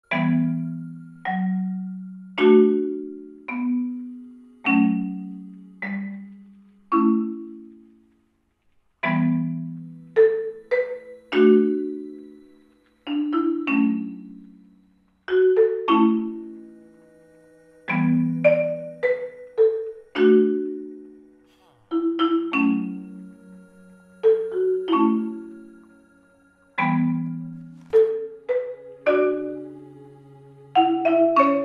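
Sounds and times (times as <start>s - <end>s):
marimba: 0.0s - 31.6s.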